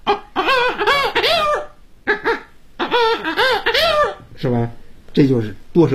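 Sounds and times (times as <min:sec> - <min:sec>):
person imitating an old hen and a rooster with their mouth using circular breathing: 0:00.0 - 0:04.3
speech: 0:04.4 - 0:05.9.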